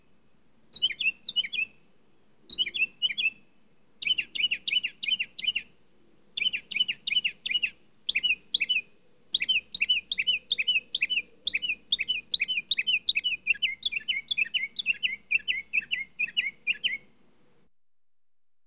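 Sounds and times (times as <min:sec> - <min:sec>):
mockingbird singing: 0:00.7 - 0:01.7, 0:02.5 - 0:03.3, 0:04.0 - 0:05.7, 0:06.4 - 0:17.1.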